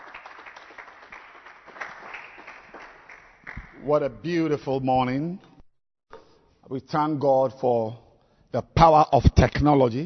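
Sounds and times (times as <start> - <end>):
audience clapping: 0.0 - 4.1
speech: 3.8 - 5.5, 6.7 - 10.0.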